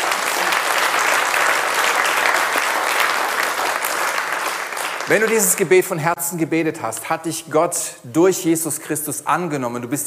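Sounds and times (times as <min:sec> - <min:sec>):
audience applause at a religious gathering after a prayer: 0:00.0 - 0:05.8
speech: 0:05.1 - 0:10.0.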